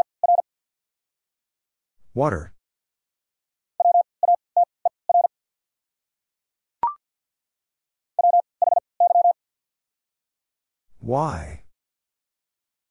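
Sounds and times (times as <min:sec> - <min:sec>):
speech: 0:02.2 - 0:02.6, 0:11.1 - 0:11.6
fast Morse code beeps: 0:03.8 - 0:04.4, 0:05.1 - 0:05.3, 0:08.2 - 0:09.4.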